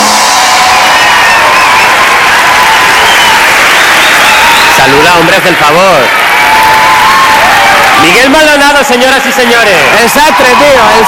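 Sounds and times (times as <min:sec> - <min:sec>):
audience applause: 0:00.0 - 0:11.0
speech: 0:05.1 - 0:06.2, 0:08.0 - 0:11.0.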